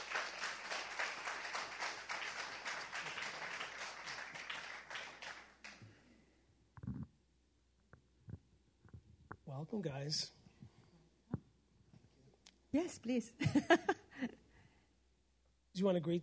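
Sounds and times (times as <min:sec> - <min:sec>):
audience applause welcoming a guest onstage: 0:00.0 - 0:05.8
speech: 0:09.5 - 0:10.4, 0:12.8 - 0:14.3, 0:15.8 - 0:16.2.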